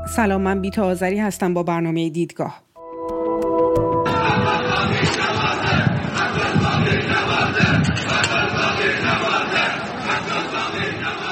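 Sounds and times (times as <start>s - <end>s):
speech: 0.2s - 2.6s
crowd chanting slogans beside rubble of the Metropol building: 4.0s - 11.3s.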